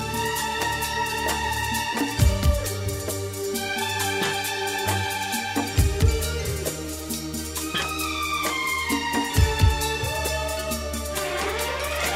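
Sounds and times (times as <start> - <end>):
instrumental music: 0.0 - 12.1.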